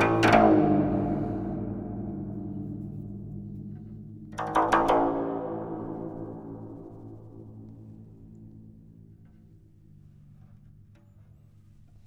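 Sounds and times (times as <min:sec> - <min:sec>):
guzheng playing: 0:00.0 - 0:08.3.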